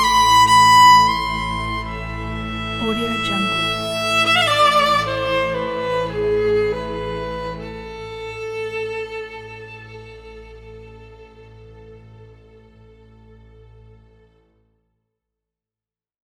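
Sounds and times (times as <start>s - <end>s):
violin playing: 0.0s - 12.3s.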